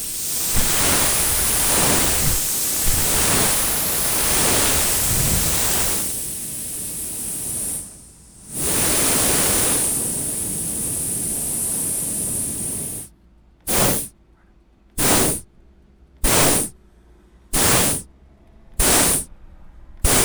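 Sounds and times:
tyre inflation station: 0:00.0 - 0:13.1, 0:13.7 - 0:14.1, 0:15.0 - 0:15.4, 0:16.2 - 0:16.7, 0:17.5 - 0:18.1, 0:18.8 - 0:19.3, 0:20.0 - 0:20.2.

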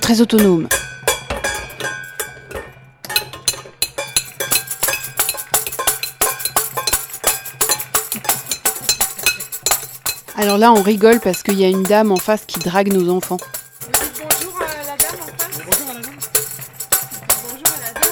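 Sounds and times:
children banging a saucepan and toy dishes: 0:00.0 - 0:18.1
speech: 0:00.1 - 0:00.8, 0:10.4 - 0:14.0.

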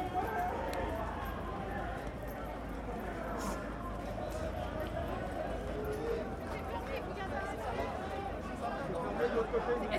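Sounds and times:
crowd chatter at the end of a solidarity march in Paris: 0:00.0 - 0:09.9.

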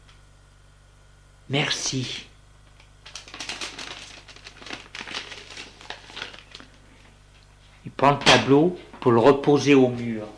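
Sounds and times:
speech: 0:01.5 - 0:02.3, 0:08.0 - 0:10.3
envelope torn open: 0:03.0 - 0:06.8
paper crinkling: 0:03.0 - 0:07.2.

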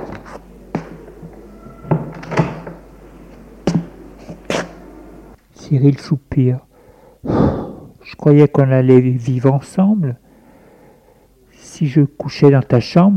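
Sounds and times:
bedroom door being opened: 0:01.2 - 0:02.9
speech: 0:05.7 - 0:07.5, 0:08.1 - 0:10.3, 0:11.8 - 0:13.1.

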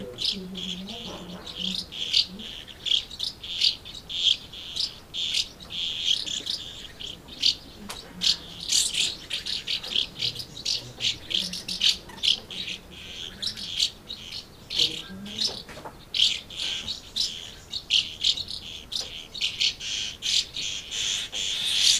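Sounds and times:
swallows giving short chirps and twitters: 0:00.0 - 0:21.9.

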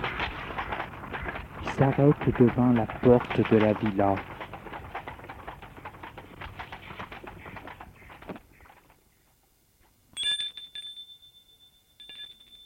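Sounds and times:
rattling clatter: 0:00.0 - 0:09.0
speech: 0:01.8 - 0:04.3
doorbell ringing: 0:10.2 - 0:12.6.

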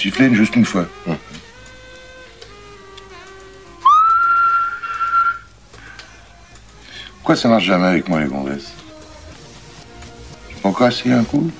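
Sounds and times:
speech: 0:00.0 - 0:01.2, 0:07.3 - 0:08.8, 0:10.8 - 0:11.5
person whistling toward a keychain: 0:03.8 - 0:05.5.

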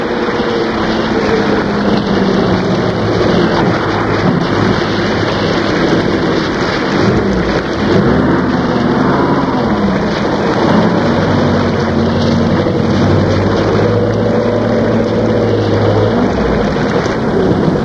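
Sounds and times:
rain: 0:00.0 - 0:17.8.

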